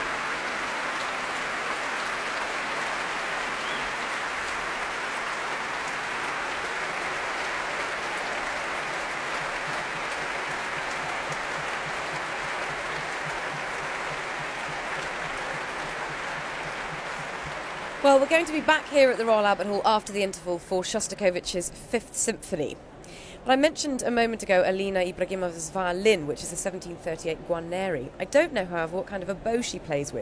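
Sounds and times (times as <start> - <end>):
concert hall audience applause: 0.0 - 20.2
speech: 18.1 - 30.1.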